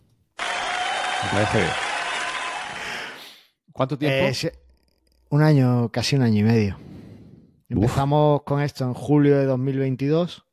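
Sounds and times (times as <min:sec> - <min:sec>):
applause sound effect: 0:00.4 - 0:03.2
speech: 0:01.2 - 0:01.8, 0:03.8 - 0:04.6, 0:05.3 - 0:07.0, 0:07.7 - 0:10.5.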